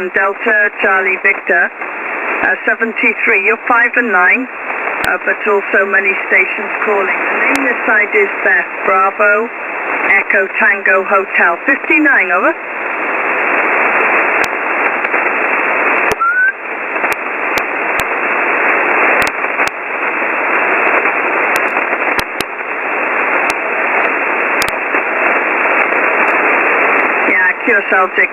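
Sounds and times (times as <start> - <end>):
speech: 0.0 - 9.7, 10.3 - 12.9, 27.7 - 28.3
shortwave radio static on the 20-meter amateur band: 0.0 - 28.3
clicks and crackles: 14.4 - 15.4, 16.0 - 18.2, 19.1 - 20.2, 20.9 - 26.5
faint short tone: 16.2 - 16.6.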